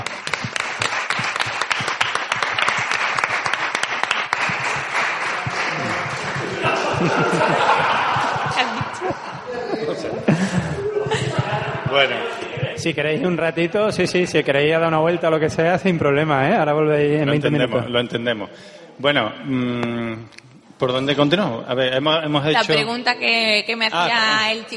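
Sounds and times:
audience applause: 0.0s - 12.2s
murmuring voices: 4.6s - 13.2s
laughter: 6.4s - 12.0s
speech: 11.9s - 24.7s.

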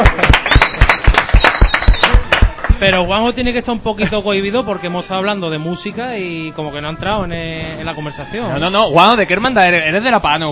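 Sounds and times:
applause: 0.0s - 3.0s
speech: 2.9s - 10.5s.

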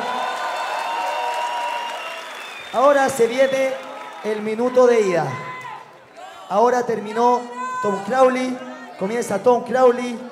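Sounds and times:
crowd applause: 0.0s - 6.5s
speech: 2.7s - 5.5s, 6.5s - 10.2s.

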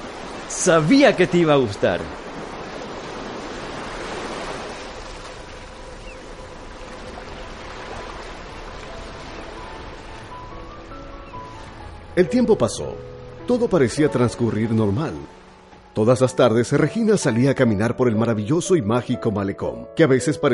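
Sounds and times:
breaking waves at a beach house: 0.0s - 16.4s
sea breeze at a beach house: 0.0s - 20.5s
speech: 0.5s - 2.2s, 12.2s - 15.4s, 16.0s - 20.5s.

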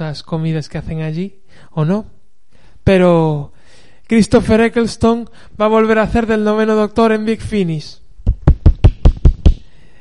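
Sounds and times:
speech: 0.1s - 2.2s, 2.9s - 8.0s
clap with the edge of the hand: 8.3s - 9.7s.

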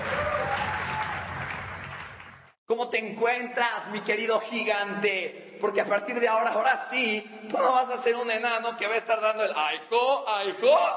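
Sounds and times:
crowd applause: 0.0s - 2.6s
speech: 2.7s - 10.9s.

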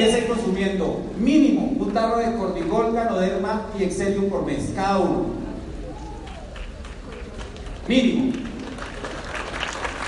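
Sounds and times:
speech: 0.0s - 5.5s, 7.9s - 8.5s
audience clapping: 6.2s - 10.0s.

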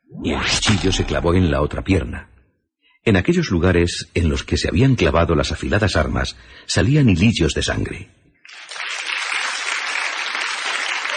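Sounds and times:
speech: 0.2s - 2.3s, 3.0s - 8.2s
audience applauding a knife-throwing act: 8.5s - 11.1s.

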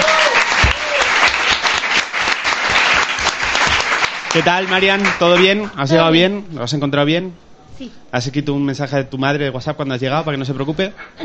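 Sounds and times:
audience applause: 0.0s - 5.8s
speech: 4.4s - 11.2s.

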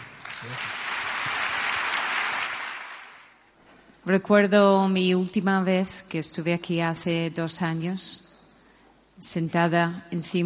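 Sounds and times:
audience applause: 0.0s - 3.4s
speech: 0.4s - 0.8s, 4.0s - 8.3s, 9.2s - 10.4s.

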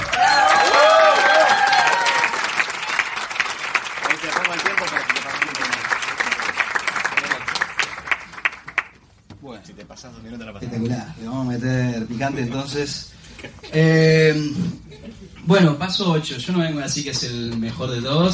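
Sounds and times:
audience applause: 0.0s - 9.0s
speech: 12.3s - 13.0s, 13.8s - 14.8s, 15.5s - 18.3s
laughter: 13.4s - 15.5s.

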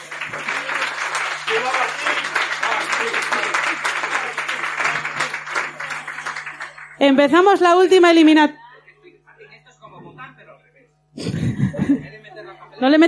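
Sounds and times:
laughter: 0.0s - 6.8s, 11.2s - 13.0s
audience applause: 0.0s - 7.1s
speech: 7.0s - 8.6s, 12.8s - 13.0s.

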